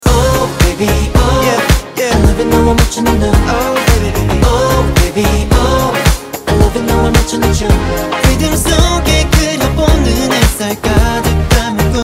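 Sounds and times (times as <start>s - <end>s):
guitar: 0.0s - 12.0s.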